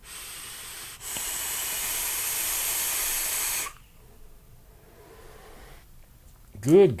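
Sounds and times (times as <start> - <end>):
vape device firing and hissing: 0.0 - 3.8.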